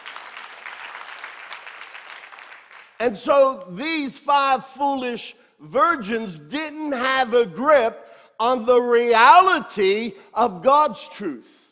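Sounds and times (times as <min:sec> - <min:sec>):
audience clapping: 0:00.0 - 0:03.0
speech: 0:03.0 - 0:11.7.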